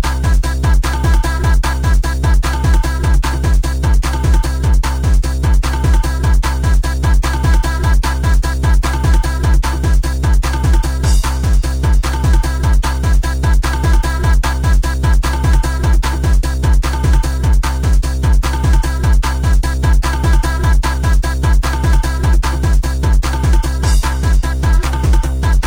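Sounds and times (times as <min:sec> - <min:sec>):
drums: 0:00.0 - 0:25.6.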